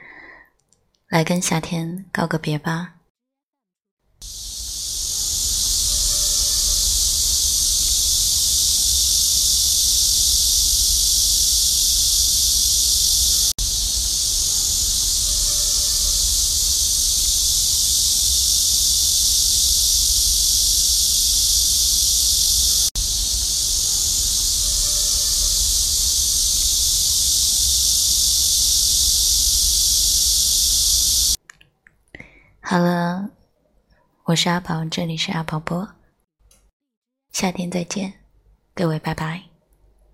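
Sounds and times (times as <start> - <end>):
speech: 1.1 - 3.0, 34.4 - 36.0, 37.4 - 38.2, 38.8 - 39.5
cicadas buzzing in summer: 4.2 - 31.4.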